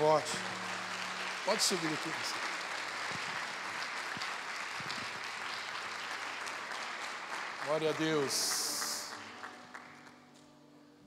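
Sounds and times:
audience applauding: 0:00.0 - 0:10.3
speech: 0:00.1 - 0:00.5, 0:01.5 - 0:02.5, 0:07.7 - 0:08.6.

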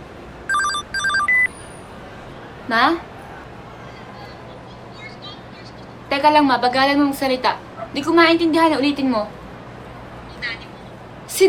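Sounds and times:
phone ringing with an incoming call from Mom: 0:00.5 - 0:01.6
speech: 0:02.7 - 0:03.1, 0:06.2 - 0:09.4.

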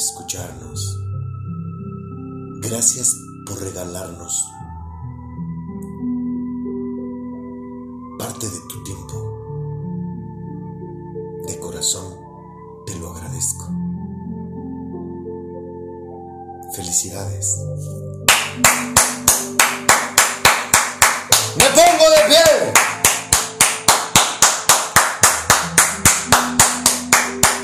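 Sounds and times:
soft music: 0:00.0 - 0:27.6
speech: 0:00.3 - 0:01.0, 0:02.7 - 0:04.7
loud steady rhythmic clapping: 0:18.2 - 0:27.6.

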